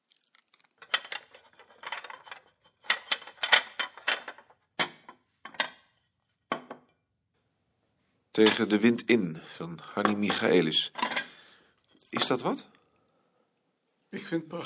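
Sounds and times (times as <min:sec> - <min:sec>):
dishes and cutlery clinking as a table is set: 0:00.8 - 0:07.0, 0:08.4 - 0:08.8, 0:10.0 - 0:11.4
speech: 0:08.4 - 0:11.1, 0:12.2 - 0:12.7, 0:14.1 - 0:14.6.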